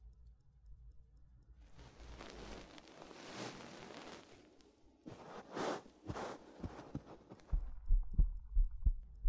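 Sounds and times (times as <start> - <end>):
soft fabric rustling and shuffling: 1.7 - 7.5
human heartbeat: 6.1 - 9.2.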